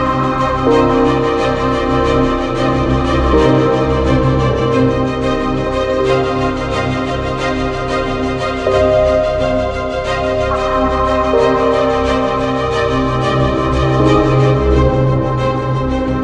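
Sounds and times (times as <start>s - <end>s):
sci-fi soundscape: 0.0s - 16.2s.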